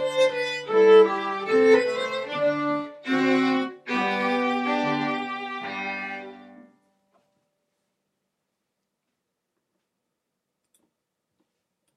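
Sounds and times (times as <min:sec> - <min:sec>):
strings playing a minuet with harmony: 0:00.0 - 0:06.8.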